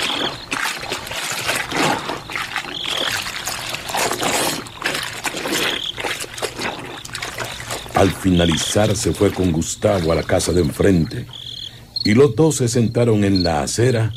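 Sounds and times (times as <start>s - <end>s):
foul-smelling liquid poured around a house: 0.0s - 11.3s
speech: 8.0s - 11.4s, 12.0s - 14.1s.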